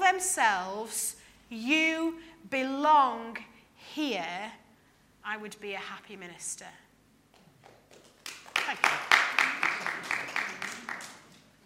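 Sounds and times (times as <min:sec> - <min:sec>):
speech: 0:00.2 - 0:04.6, 0:05.2 - 0:06.8, 0:08.7 - 0:10.2
audience applause: 0:07.7 - 0:11.6.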